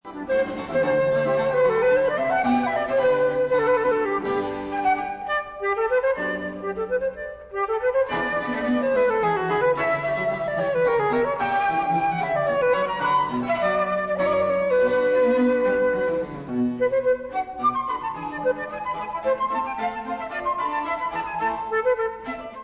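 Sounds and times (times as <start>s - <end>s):
sonata: 0.0s - 22.6s.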